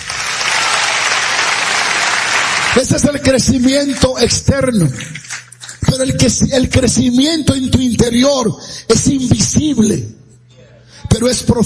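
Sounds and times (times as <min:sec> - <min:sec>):
audience applause at a church sermon: 0:00.0 - 0:05.9
speech: 0:02.8 - 0:10.2, 0:11.2 - 0:11.6.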